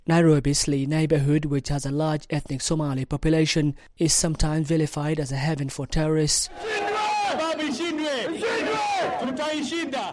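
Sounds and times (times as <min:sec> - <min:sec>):
speech: 0:00.1 - 0:07.0, 0:09.0 - 0:10.1
crowd chanting at a Nairobi Somali community solidarity rally against terrorism: 0:06.5 - 0:10.1.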